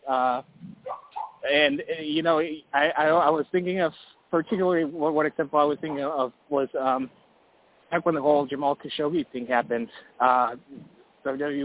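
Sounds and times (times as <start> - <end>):
speech: 0.1 - 0.6, 1.5 - 7.2, 7.9 - 11.6
dog barking and whimpering: 0.8 - 1.5.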